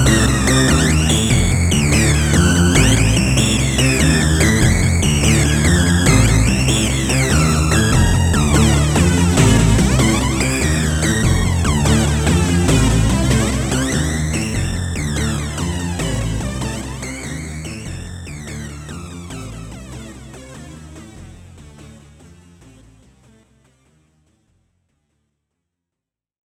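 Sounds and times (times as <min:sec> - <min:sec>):
musical riff: 0:00.0 - 0:17.2.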